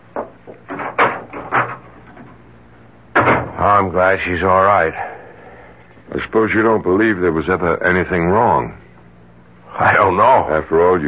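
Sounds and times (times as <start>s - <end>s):
speech: 0.2s - 0.9s, 3.6s - 5.2s, 6.1s - 8.8s, 9.8s - 11.0s
door opening and shutting: 0.6s - 2.3s, 3.1s - 3.7s.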